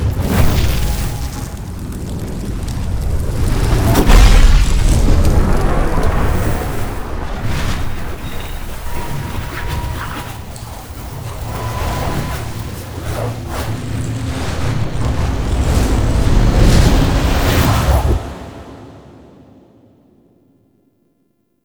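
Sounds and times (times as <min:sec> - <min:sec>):
stereo energy sequence: 0:00.2 - 0:18.8.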